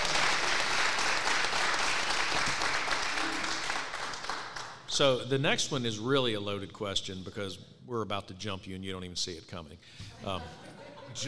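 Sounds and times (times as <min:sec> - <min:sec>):
audience applause: 0:00.0 - 0:04.8
speech: 0:05.0 - 0:11.2.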